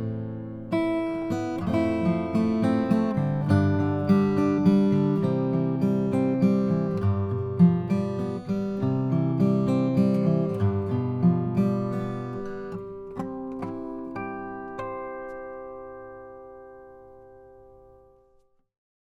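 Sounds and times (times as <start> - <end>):
acoustic guitar with German spruce top: 0.0 - 18.5.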